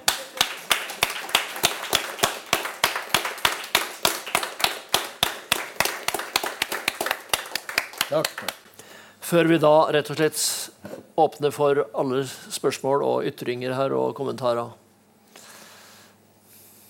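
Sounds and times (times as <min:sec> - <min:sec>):
applause: 0:00.0 - 0:08.6
speech: 0:08.1 - 0:08.6, 0:09.3 - 0:14.8.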